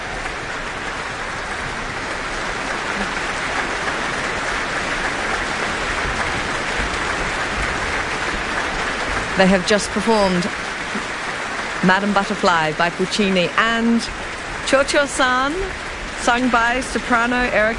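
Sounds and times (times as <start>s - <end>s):
audience and orchestra applauding after an opera: 0.0s - 15.6s
speech: 9.4s - 10.7s, 11.8s - 17.7s.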